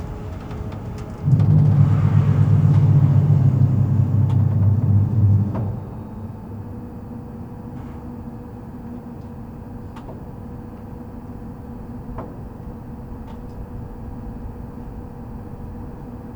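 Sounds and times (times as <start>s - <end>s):
3.6-metre telescope dome rotating: 0.0s - 6.4s.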